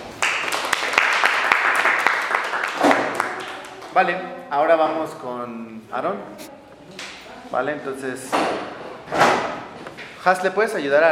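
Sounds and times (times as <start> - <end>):
audience applause: 0.2 - 3.8
speech: 4.0 - 9.2, 10.2 - 11.1.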